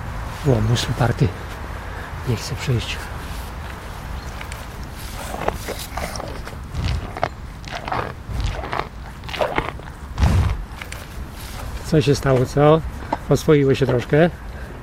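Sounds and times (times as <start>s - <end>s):
speech: 0.4s - 1.6s, 2.3s - 3.2s, 11.9s - 14.5s
European bison crunching carrots and beets: 4.2s - 11.8s.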